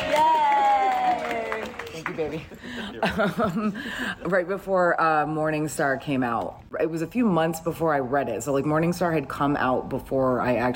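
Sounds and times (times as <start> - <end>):
audience applause: 0.0 - 2.6
laughter: 2.0 - 4.3
speech: 2.2 - 10.7.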